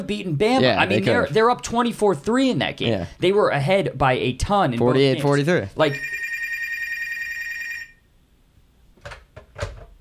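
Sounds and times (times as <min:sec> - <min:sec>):
speech: 0:00.0 - 0:06.2
landline telephone ringing: 0:05.9 - 0:08.0.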